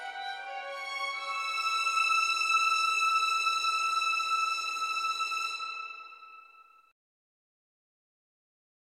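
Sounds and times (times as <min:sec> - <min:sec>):
background music: 0:00.0 - 0:06.9.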